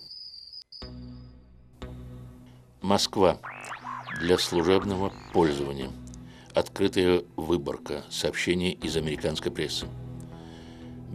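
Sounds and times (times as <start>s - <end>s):
speech: 2.8s - 3.5s, 4.2s - 6.0s, 6.6s - 10.0s
cicadas singing at night: 3.4s - 5.8s.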